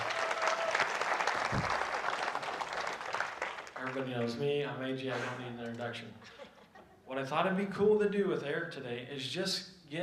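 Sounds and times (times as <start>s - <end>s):
audience clapping: 0.0s - 4.5s
speech: 4.0s - 6.4s, 7.1s - 10.0s
laughter: 6.2s - 7.1s.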